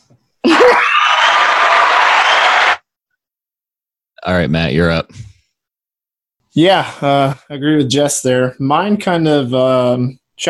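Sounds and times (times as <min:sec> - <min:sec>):
soundboard applause effect: 0:00.4 - 0:02.9
speech: 0:04.3 - 0:05.3, 0:06.6 - 0:10.4.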